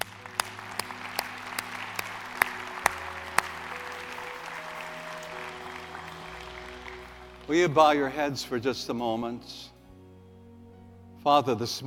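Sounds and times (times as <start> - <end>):
audience applauding: 0.0 - 8.2
speech: 7.5 - 9.7, 11.2 - 11.8.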